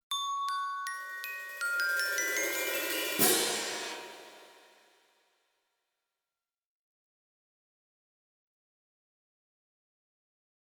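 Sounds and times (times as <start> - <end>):
free-spirited percussion: 0.1 - 5.0.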